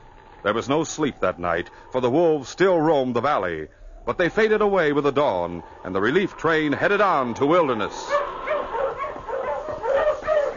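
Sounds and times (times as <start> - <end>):
speech: 0.4 - 8.3
husky sled dog barking, yipping and whining: 8.0 - 10.5.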